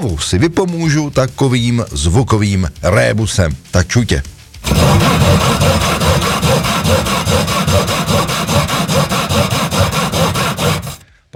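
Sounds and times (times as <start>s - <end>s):
speech: 0.0s - 5.8s, 6.9s - 9.1s
sawing: 4.6s - 11.0s.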